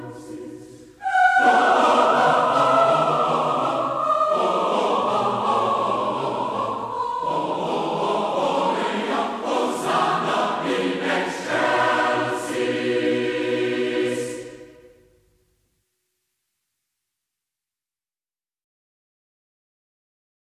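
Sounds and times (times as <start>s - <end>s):
choir singing: 0.0s - 15.0s.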